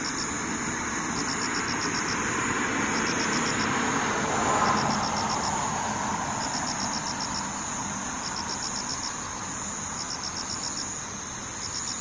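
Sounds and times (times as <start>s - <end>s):
insects singing in buzzy pulsed bursts: 0.0s - 12.0s
low rumble of traffic: 0.0s - 12.0s
vehicle passing: 0.5s - 9.4s.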